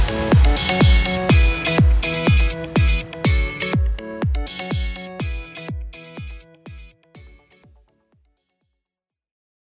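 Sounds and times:
upbeat music: 0.0s - 7.7s.

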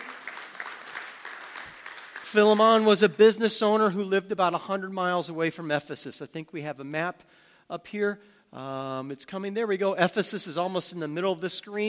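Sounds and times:
round of applause: 0.0s - 3.0s
speech: 2.3s - 11.8s.

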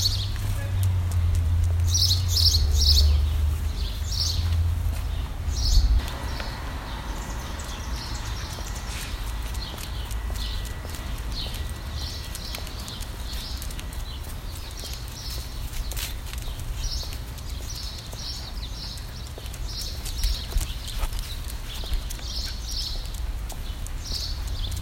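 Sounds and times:
low rumble: 0.0s - 15.6s
birds chirping: 0.0s - 24.8s.

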